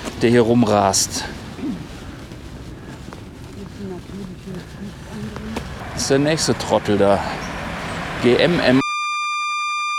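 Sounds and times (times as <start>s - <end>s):
speech: 0.2s - 1.4s, 6.0s - 7.5s, 8.2s - 8.8s
censor beep over licence plate: 8.8s - 9.9s.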